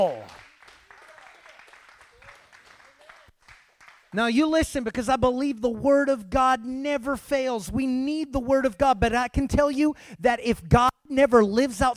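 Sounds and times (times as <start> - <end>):
speech: 0.0 - 0.4, 4.1 - 11.9
audience clapping hands: 0.0 - 4.4.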